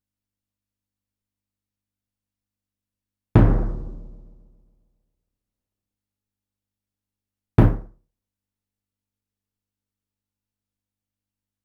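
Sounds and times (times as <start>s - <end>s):
Yamaha DD-65 bass drum: 3.4s - 4.6s.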